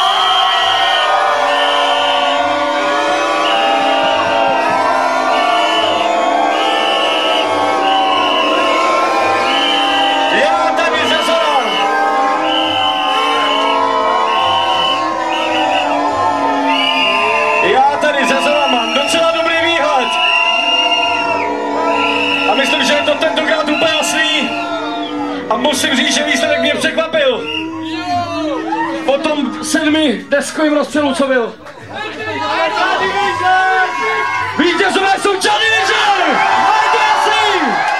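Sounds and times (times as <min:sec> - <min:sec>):
audience group cheering: 0:00.0 - 0:37.9
speech: 0:30.6 - 0:31.7.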